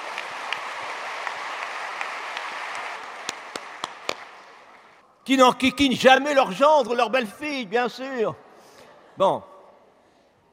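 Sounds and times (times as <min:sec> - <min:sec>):
audience applause: 0:00.0 - 0:05.0
speech: 0:05.3 - 0:08.4, 0:09.2 - 0:09.5.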